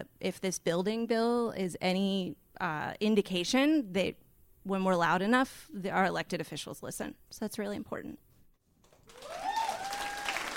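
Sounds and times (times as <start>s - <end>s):
speech: 0.0s - 8.3s
audience applause: 9.0s - 10.5s
sustained high whoop or whistle: 9.1s - 10.5s.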